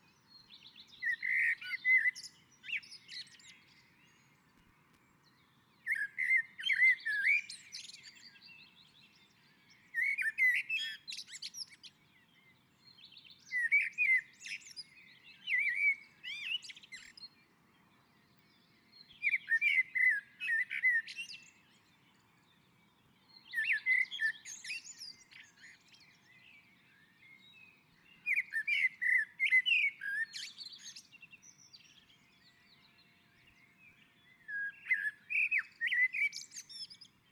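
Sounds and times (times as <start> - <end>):
common blackbird song: 0.0 - 37.3.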